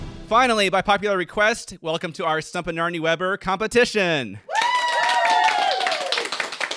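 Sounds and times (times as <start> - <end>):
speech: 0.3 - 4.5
studio audience applauding at a competition: 4.5 - 6.7.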